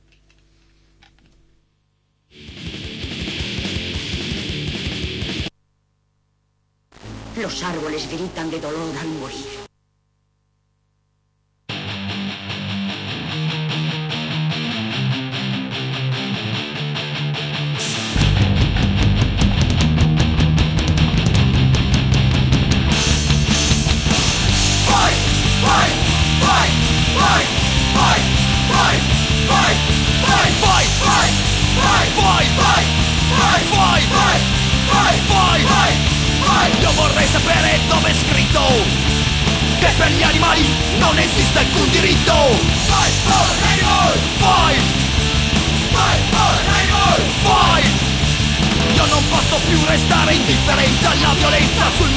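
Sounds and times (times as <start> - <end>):
loud distorted guitars: 2.3 - 5.5, 6.9 - 9.7, 11.7 - 52.1
driving drums: 2.4 - 5.5, 17.8 - 52.1
punk rock song by an Italian band: 2.4 - 5.5, 11.7 - 52.1
speech: 7.4 - 9.6
shouted vocals: 24.8 - 38.9, 39.8 - 45.0, 45.8 - 48.1.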